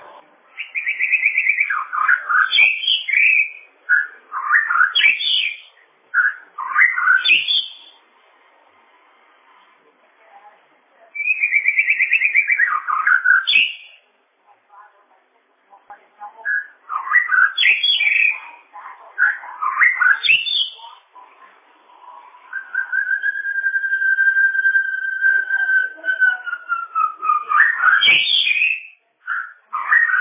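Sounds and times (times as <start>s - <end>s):
bird song of rattling trill and whistled warbles: 0.1s - 8.0s, 11.2s - 14.0s, 16.4s - 21.0s, 22.4s - 30.1s.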